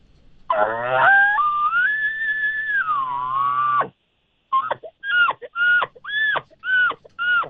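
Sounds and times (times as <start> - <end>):
imitated elk bugle at an elk calling competition: 0.5 - 4.0, 4.6 - 7.4.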